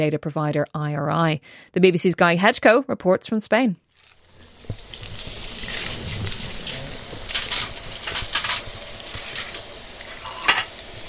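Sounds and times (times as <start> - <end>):
speech: 0.0 - 3.8
aubergine fritters frying in olive oil: 4.0 - 11.0.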